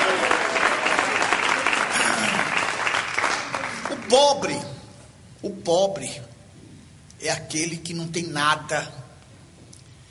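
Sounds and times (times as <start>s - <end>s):
audience clapping hands: 0.0s - 4.6s
speech: 4.1s - 4.7s, 5.4s - 6.3s, 7.2s - 9.0s.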